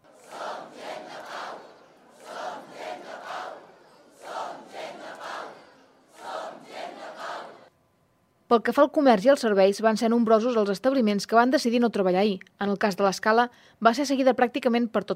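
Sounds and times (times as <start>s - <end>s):
crowd chanting slogans in unison: 0.0s - 7.7s
speech: 8.5s - 15.1s.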